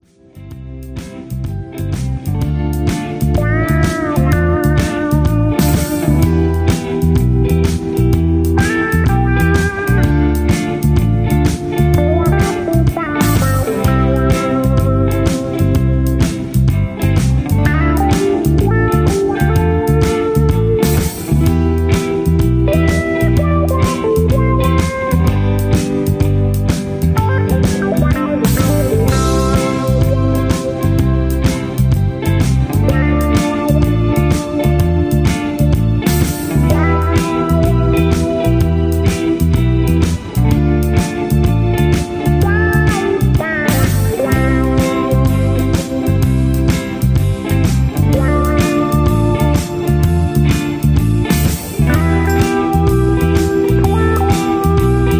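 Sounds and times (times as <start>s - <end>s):
instrumental music with no leads: 0.0s - 55.1s.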